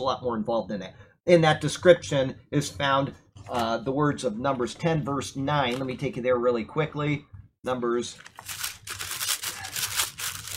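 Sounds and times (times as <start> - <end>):
speech: 0.0 - 8.6
papers being shuffled: 8.1 - 10.5.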